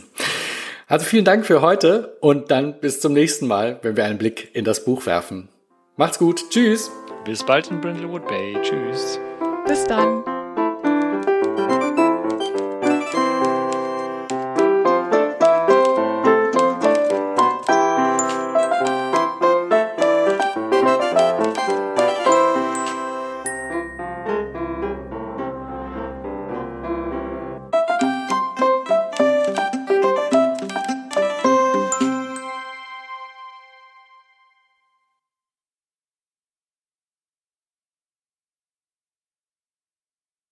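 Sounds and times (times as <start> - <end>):
speech: 0.9 - 10.3
podcast outro music: 6.4 - 34.4.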